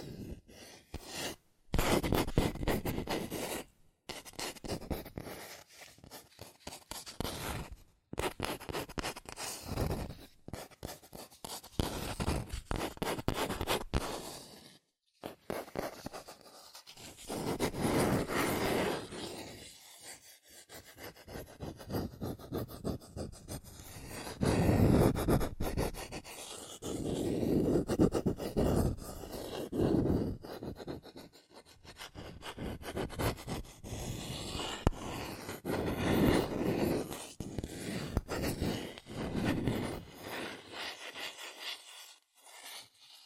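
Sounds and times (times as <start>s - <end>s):
tapping, scratching and tracing on cardboard and paper: 1.0s - 43.2s.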